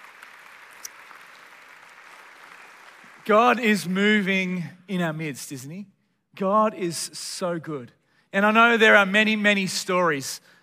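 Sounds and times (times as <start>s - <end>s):
audience applause: 0.0s - 3.3s
speech: 3.2s - 10.6s.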